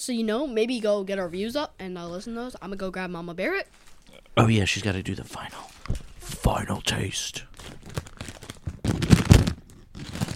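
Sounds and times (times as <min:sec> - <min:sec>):
speech: 0:00.0 - 0:08.0
chip bag crinkling: 0:07.5 - 0:10.3.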